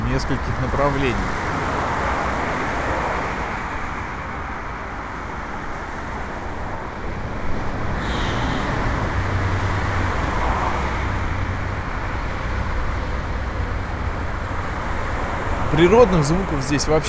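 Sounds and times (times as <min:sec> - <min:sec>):
road traffic at intersection: 0:00.0 - 0:17.0
speech: 0:00.1 - 0:01.5, 0:15.8 - 0:17.0
tire hiss at intersection: 0:07.5 - 0:17.0.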